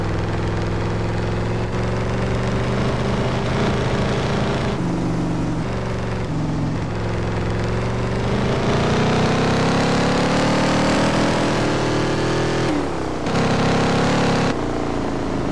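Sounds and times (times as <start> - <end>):
2010 Shelby Mustang GT500 SVT engine: 0.0 - 15.5.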